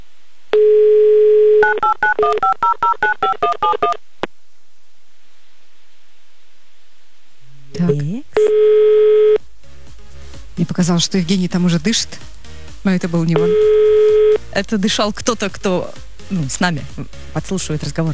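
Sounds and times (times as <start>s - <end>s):
telephone dial tone: 0.6s - 4.0s, 8.4s - 9.4s, 13.4s - 14.4s
speech: 10.8s - 13.7s, 14.6s - 18.1s.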